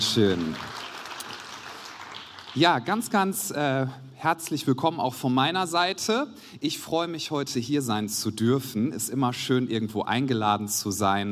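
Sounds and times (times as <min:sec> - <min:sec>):
audience clapping hands: 0:00.0 - 0:03.4
speech: 0:00.2 - 0:00.8, 0:02.6 - 0:11.2.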